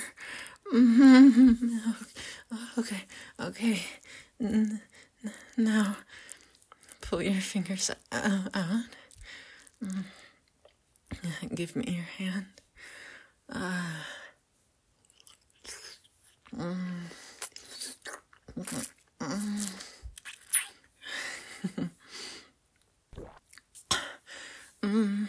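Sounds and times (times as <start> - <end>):
speech: 0.7 - 6.3, 7.1 - 10.2, 11.1 - 12.6, 13.5 - 14.2, 16.5 - 17.2, 18.1 - 19.9, 24.8 - 25.2
wet chewing and mouth smacking from someone eating cake: 6.1 - 8.1, 8.9 - 11.1, 15.0 - 16.5, 17.4 - 20.9.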